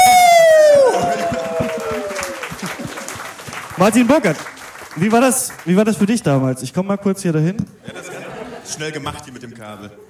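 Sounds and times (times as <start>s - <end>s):
audience applause and cheering: 0.0s - 6.0s
laughter: 1.1s - 3.2s, 7.8s - 10.0s
speech: 3.8s - 8.1s, 8.7s - 10.0s.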